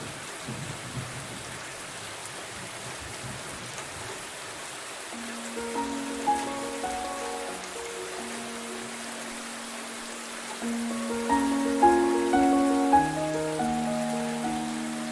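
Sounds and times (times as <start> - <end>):
thunderstorm: 0.0 - 1.6
gentle music: 5.2 - 15.1.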